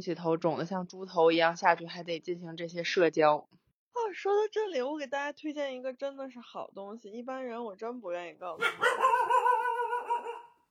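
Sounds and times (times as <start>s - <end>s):
speech: 0.0s - 9.3s
dog whining bark: 8.6s - 10.6s.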